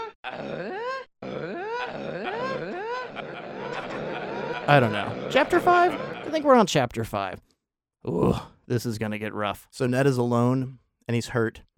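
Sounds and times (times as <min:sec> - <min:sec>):
person imitating grunting noises: 0:00.0 - 0:03.0, 0:08.1 - 0:08.6
laughter: 0:00.0 - 0:06.7
speech: 0:04.7 - 0:11.7.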